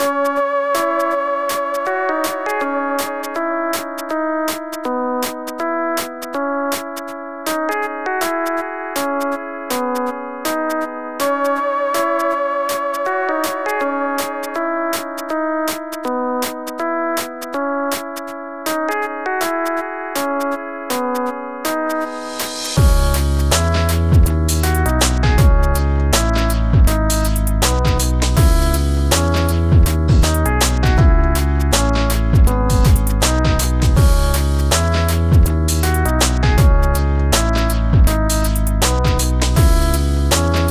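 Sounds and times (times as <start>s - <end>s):
music: 0.0s - 40.6s.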